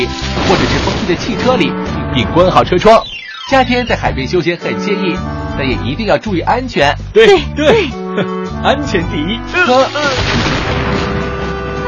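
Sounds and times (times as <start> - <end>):
speech: 0.0 - 10.8
thunder clap: 10.0 - 11.8.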